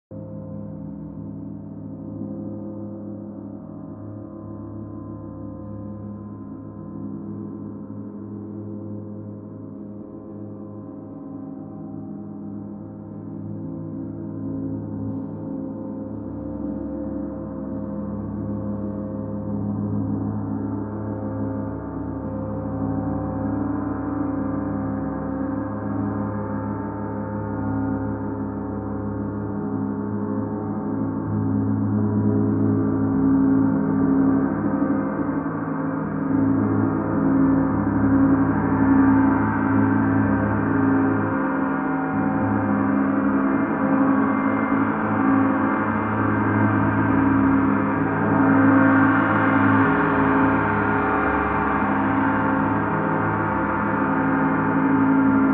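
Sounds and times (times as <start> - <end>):
Mercury gong: 0.1 - 55.5.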